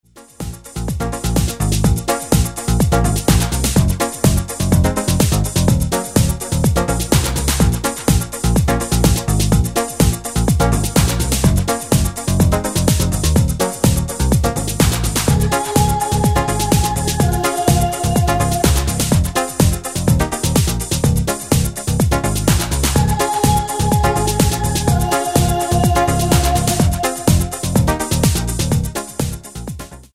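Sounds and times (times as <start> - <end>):
dub song: 0.4 - 29.6.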